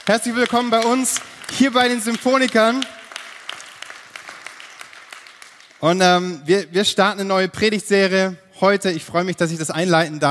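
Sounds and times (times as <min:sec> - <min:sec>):
speech: 0:00.0 - 0:03.0, 0:05.8 - 0:10.2
crowd applause: 0:00.0 - 0:05.9.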